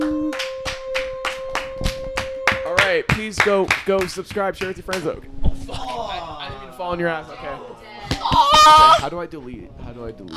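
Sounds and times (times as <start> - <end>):
small group clapping: 0.0 - 5.2
speech: 3.3 - 7.7, 8.3 - 10.3.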